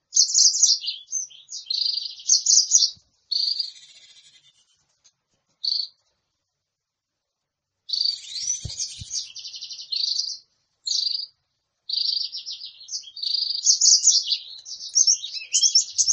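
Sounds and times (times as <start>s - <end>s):
sunbird trills: 0.2s - 4.8s, 7.9s - 11.3s, 11.9s - 16.1s.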